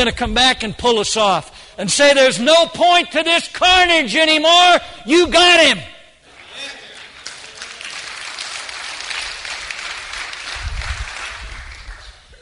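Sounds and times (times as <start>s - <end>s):
speech: 0.0s - 5.9s
weak scattered applause from an audience: 6.3s - 12.3s.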